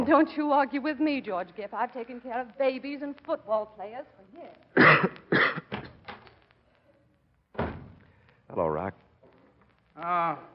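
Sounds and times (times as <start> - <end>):
speech: 0.0 - 5.7, 8.5 - 9.0, 10.0 - 10.5
man coughing: 4.8 - 5.8.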